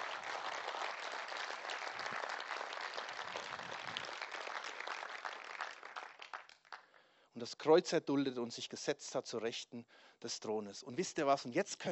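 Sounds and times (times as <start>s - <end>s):
audience applause: 0.0s - 6.8s
speech: 7.4s - 11.9s.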